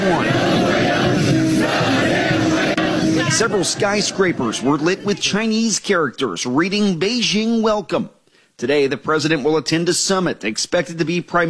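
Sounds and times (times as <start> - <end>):
hundreds of Chinese men and women chanting in unison greeting President Trump in China: 0.0 - 5.2
speech: 3.4 - 11.4.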